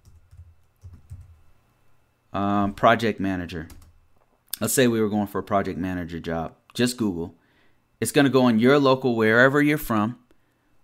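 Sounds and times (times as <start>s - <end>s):
soft keystrokes on a computer keyboard typing a Google search: 0.0s - 1.4s, 3.6s - 4.0s
speech: 2.3s - 3.8s, 4.6s - 7.4s, 8.0s - 10.2s.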